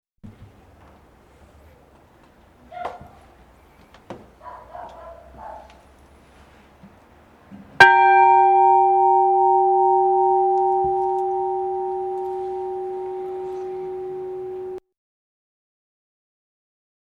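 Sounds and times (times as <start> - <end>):
bell ringing: 7.8 - 14.8.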